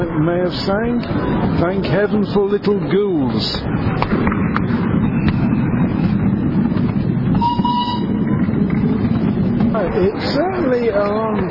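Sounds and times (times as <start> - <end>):
speech: 0.2 - 4.9, 9.8 - 11.4
steam train ride running along track: 4.6 - 11.4.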